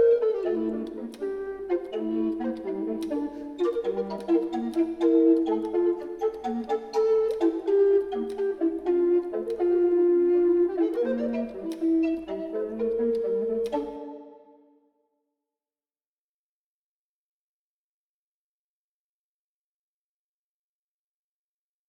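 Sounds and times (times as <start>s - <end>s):
two recorders playing a petit allegro: 0.0s - 14.6s.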